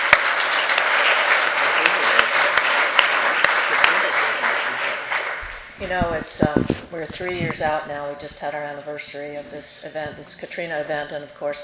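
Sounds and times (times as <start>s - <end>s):
audience applause: 0.0s - 5.8s
speech: 5.9s - 11.6s.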